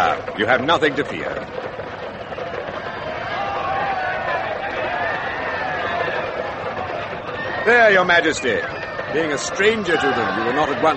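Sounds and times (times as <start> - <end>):
large crowd murmuring: 0.0 - 10.9
speech: 0.4 - 1.6, 7.7 - 10.9
raised calls and cries: 1.6 - 10.9.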